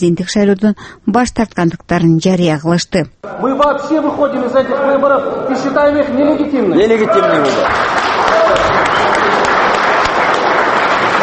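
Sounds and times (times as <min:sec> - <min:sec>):
speech: 0:00.0 - 0:08.6
dense applause at a press conference after Atambayev announced withdrawal from the presidential election: 0:07.4 - 0:11.2.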